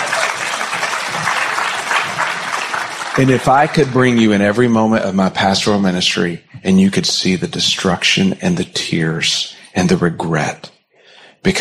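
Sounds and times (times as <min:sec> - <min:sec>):
audience applause: 0:00.0 - 0:04.7
speech: 0:03.2 - 0:10.7.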